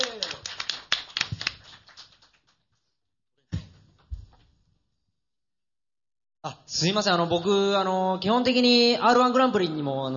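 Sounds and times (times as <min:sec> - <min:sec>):
audience applause: 0:00.0 - 0:02.4
speech: 0:06.7 - 0:10.1.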